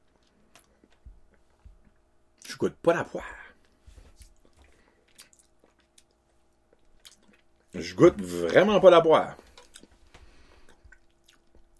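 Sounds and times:
person chewing chocolate: 0.0s - 2.5s, 3.6s - 7.7s, 9.4s - 11.7s
speech: 2.6s - 3.4s, 7.8s - 9.4s.

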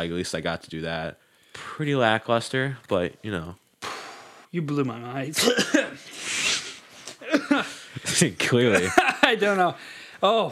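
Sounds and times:
speech: 0.0s - 3.6s, 4.5s - 5.8s, 7.5s - 10.5s
cough: 5.4s - 6.0s, 7.2s - 7.7s
laughter: 7.4s - 9.6s.

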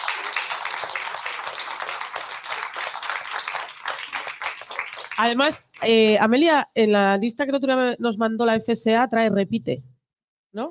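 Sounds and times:
audience applause: 0.0s - 5.4s
speech: 5.2s - 9.9s, 10.5s - 10.7s.

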